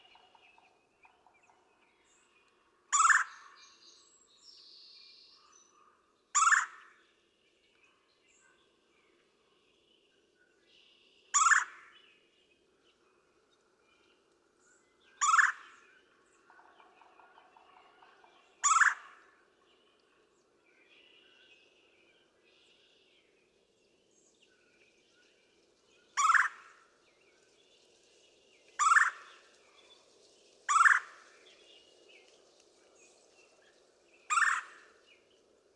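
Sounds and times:
Red-bellied Woodpecker: 0.0 - 3.8, 6.4 - 7.0, 11.3 - 11.9, 15.2 - 20.1, 26.1 - 26.8, 28.8 - 29.5, 30.7 - 31.2, 34.3 - 34.9.

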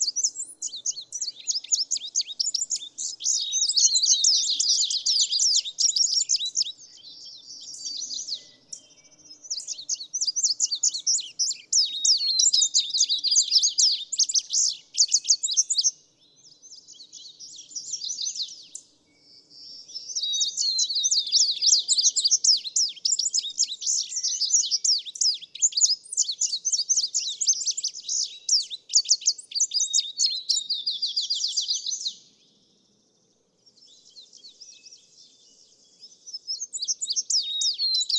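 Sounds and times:
Indigo Bunting singing: 0.0 - 38.1.

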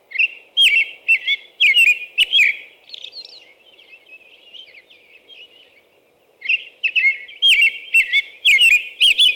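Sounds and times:
American robin singing: 0.1 - 3.4, 6.4 - 9.3.

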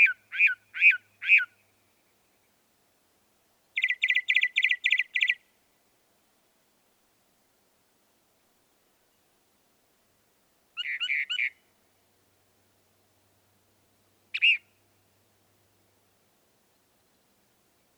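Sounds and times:
northern mockingbird song: 0.0 - 1.7, 3.7 - 5.4, 10.8 - 11.6, 14.4 - 14.6.

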